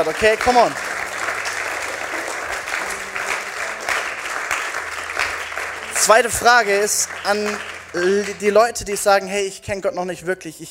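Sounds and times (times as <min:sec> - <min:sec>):
speech: 0:00.0 - 0:00.9, 0:06.0 - 0:10.7
audience applause: 0:00.0 - 0:09.2
low tonal hum: 0:00.8 - 0:09.0.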